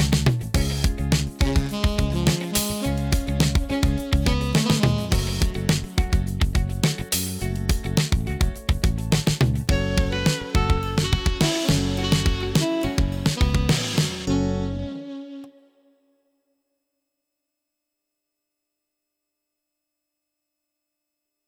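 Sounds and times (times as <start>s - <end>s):
sixteen-beat drum pattern: 0.0s - 14.3s.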